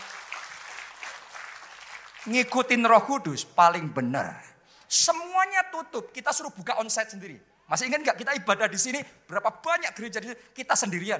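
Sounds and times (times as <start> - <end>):
audience applause: 0.0 - 2.6
speech: 2.2 - 11.1.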